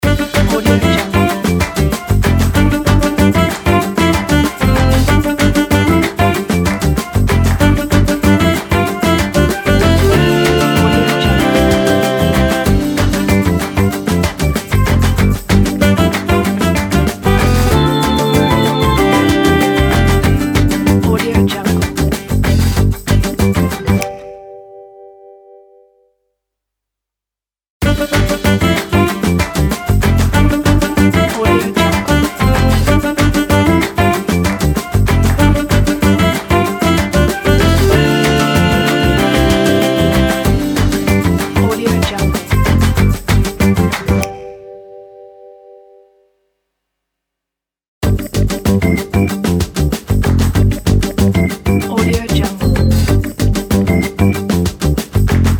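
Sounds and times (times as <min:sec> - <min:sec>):
fun show opener music: 0:00.0 - 0:24.2, 0:27.8 - 0:44.4, 0:48.0 - 0:55.5.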